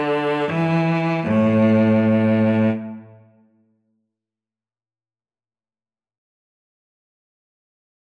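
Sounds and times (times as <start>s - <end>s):
viola and cello duet: 0.0s - 3.4s.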